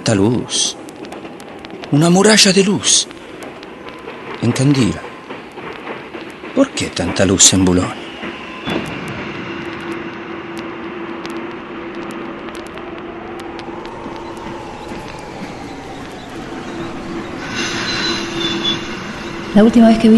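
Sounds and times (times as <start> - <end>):
steady train rumble at Boulogne railway station: 0.0 - 20.1
speech: 0.1 - 0.8, 1.9 - 3.2, 4.4 - 5.1, 6.6 - 8.0, 19.6 - 20.1
train wheels squealing at Boulogne railway station: 3.8 - 10.0, 13.9 - 20.1.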